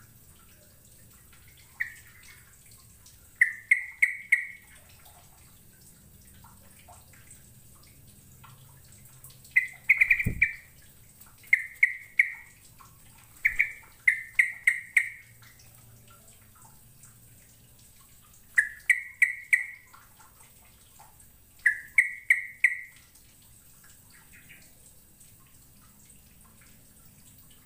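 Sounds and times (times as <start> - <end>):
bird chirps: 3.4 - 4.6, 9.6 - 10.7, 11.5 - 12.5, 13.4 - 15.2, 18.6 - 19.9, 21.6 - 23.0.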